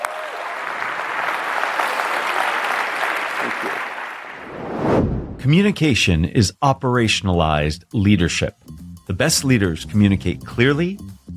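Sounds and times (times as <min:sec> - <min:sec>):
crowd clapping: 0:00.0 - 0:04.5
speech: 0:03.4 - 0:03.9, 0:05.4 - 0:08.6, 0:09.2 - 0:11.3.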